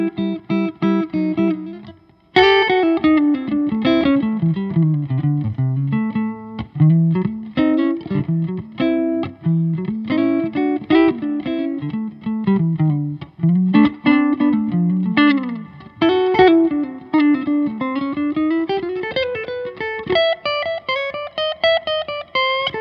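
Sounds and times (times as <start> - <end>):
maple and spruce archtop electric guitar: 0.0 - 22.8.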